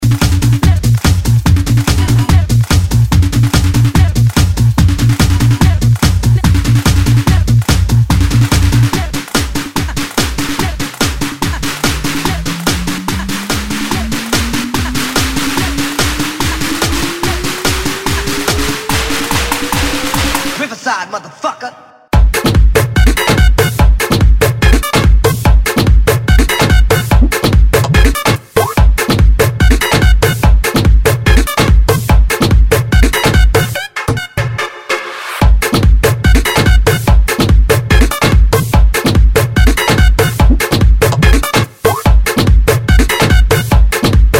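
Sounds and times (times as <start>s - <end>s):
electro funk dance remix: 0.0s - 34.6s, 35.4s - 44.3s.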